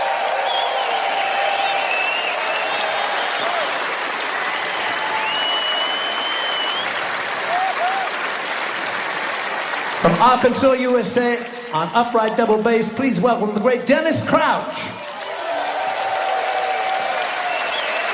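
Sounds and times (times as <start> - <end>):
shrill whistles and cheers: 0.0 - 8.4, 15.0 - 18.1
concert audience applause welcoming a band member: 0.0 - 12.4, 15.0 - 18.1
speech: 10.0 - 15.0.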